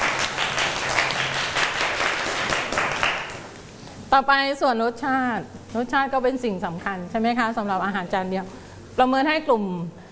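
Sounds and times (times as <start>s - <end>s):
group clapping: 0.0s - 3.7s
speech: 4.1s - 10.0s.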